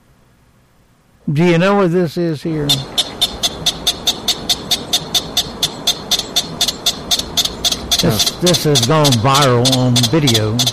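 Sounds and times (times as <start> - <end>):
speech: 1.3 - 3.1, 8.0 - 10.7
pika calling: 2.4 - 10.7.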